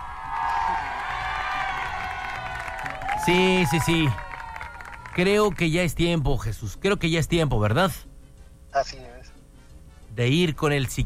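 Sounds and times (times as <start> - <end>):
applause: 0.1 - 6.1
speech: 3.2 - 4.2, 5.2 - 8.1, 10.2 - 11.0.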